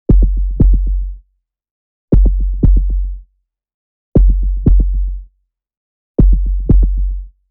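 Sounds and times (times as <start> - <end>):
heartbeat: 0.1 - 1.2, 2.1 - 3.2, 4.2 - 5.3, 6.2 - 7.4.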